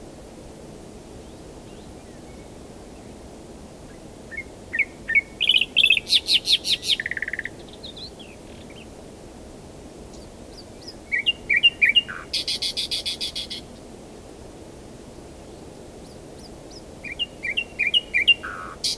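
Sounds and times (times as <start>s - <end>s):
common nightingale singing: 4.3s - 8.9s, 10.1s - 13.8s, 16.0s - 18.9s.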